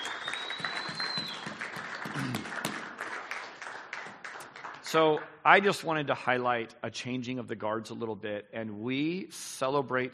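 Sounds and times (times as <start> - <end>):
audience cheering: 0.0 - 3.0
audience clapping: 0.0 - 5.7
speech: 2.2 - 2.6, 4.9 - 10.1.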